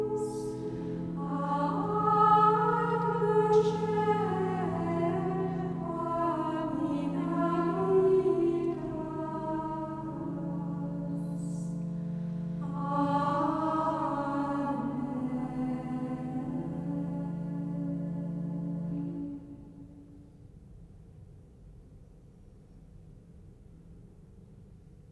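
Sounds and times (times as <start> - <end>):
gregorian chant: 0.0 - 19.8.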